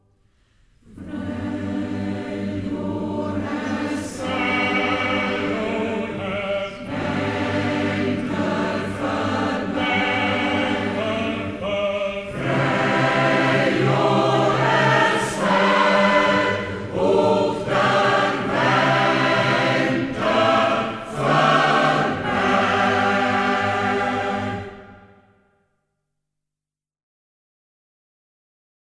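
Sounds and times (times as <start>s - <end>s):
male choral society singing: 0.9s - 25.3s.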